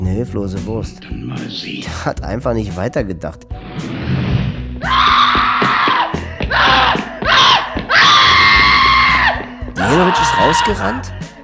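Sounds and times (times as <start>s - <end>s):
speech: 0.2s - 4.0s, 9.9s - 11.3s
woman screaming: 4.8s - 11.0s.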